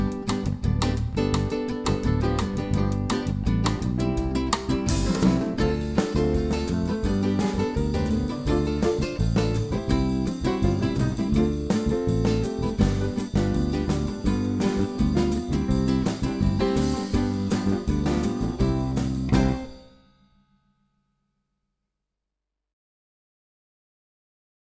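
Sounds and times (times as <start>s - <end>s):
hand samba without vocals: 0.0s - 19.7s.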